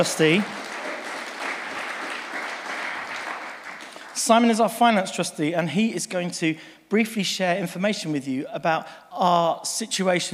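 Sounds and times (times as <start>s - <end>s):
speech: 0.0s - 0.6s, 4.2s - 10.3s
audience applause: 0.0s - 4.5s.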